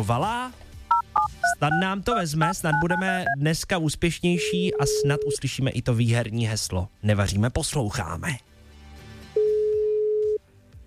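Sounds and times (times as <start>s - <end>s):
speech: 0.0s - 0.6s, 1.6s - 8.5s
telephone ringing tone on the line: 0.9s - 1.8s, 2.7s - 3.4s, 4.4s - 5.4s, 9.4s - 10.4s.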